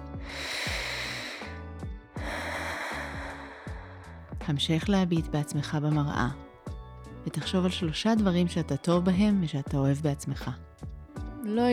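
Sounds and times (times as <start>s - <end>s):
low tonal music: 0.0s - 11.7s
slow exhale through the mouth: 0.2s - 1.6s, 2.2s - 4.3s
speech: 4.5s - 6.4s, 7.3s - 10.7s, 11.4s - 11.7s.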